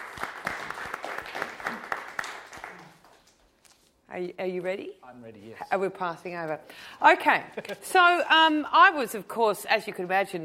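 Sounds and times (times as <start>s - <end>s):
audience round of applause: 0.0s - 3.2s
speech: 4.2s - 10.4s.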